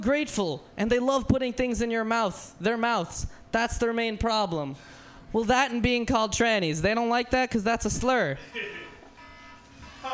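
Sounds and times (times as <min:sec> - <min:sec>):
speech: 0:00.0 - 0:08.8
alarm buzzer sound effect: 0:09.2 - 0:10.1.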